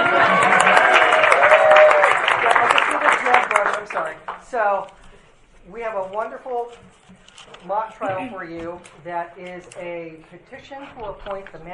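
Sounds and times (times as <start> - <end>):
audience clapping: 0.0 - 4.5
speech: 4.6 - 5.0, 5.6 - 11.7.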